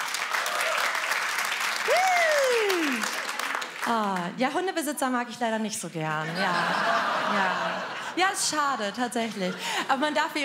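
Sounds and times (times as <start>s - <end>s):
audience applause: 0.0s - 4.3s
speech: 3.9s - 10.4s
laughter: 6.2s - 10.4s.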